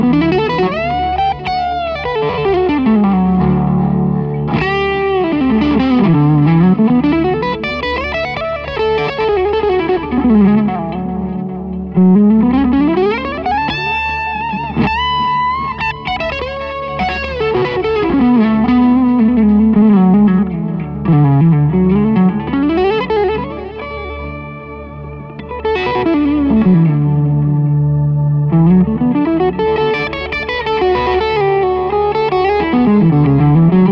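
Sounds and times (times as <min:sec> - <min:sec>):
VH4 amp channel 2 crunch tone: 0:00.0 - 0:33.8.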